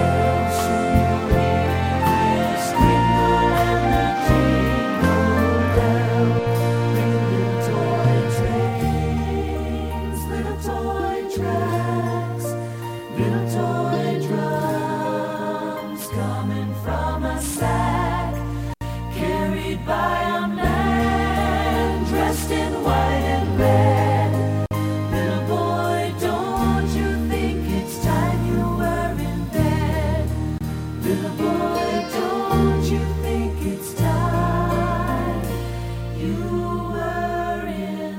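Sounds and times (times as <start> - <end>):
old toy train horns: 0.0 - 9.2
flute: 0.0 - 10.4
vocals: 0.0 - 38.1.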